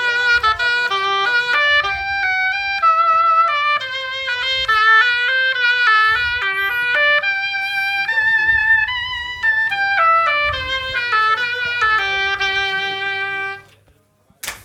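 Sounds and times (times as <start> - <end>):
oboe playing a jingle live: 0.0 - 13.6.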